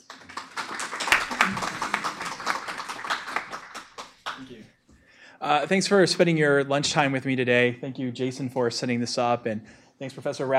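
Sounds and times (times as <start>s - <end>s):
lecture audience clapping to welcome two speakers: 0.0s - 4.7s
speech: 5.4s - 10.5s.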